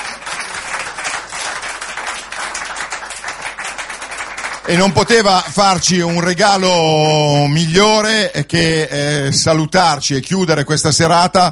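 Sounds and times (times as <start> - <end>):
applause: 0.0 - 6.7
speech: 4.7 - 11.5.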